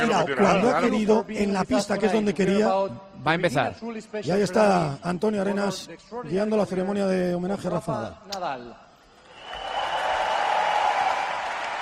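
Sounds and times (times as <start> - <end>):
speech: 0.0 - 8.8
arena crowd ovation: 9.2 - 11.8.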